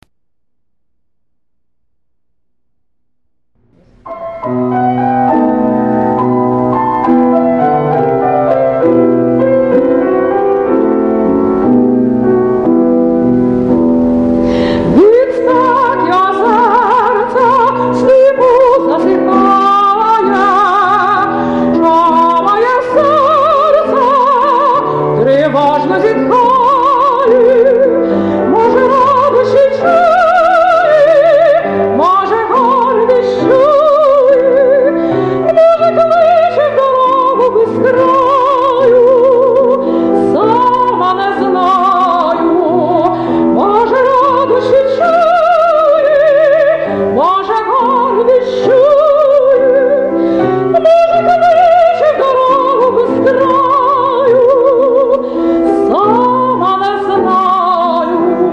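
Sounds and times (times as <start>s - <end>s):
Ukrainian art song: 0.0s - 58.5s.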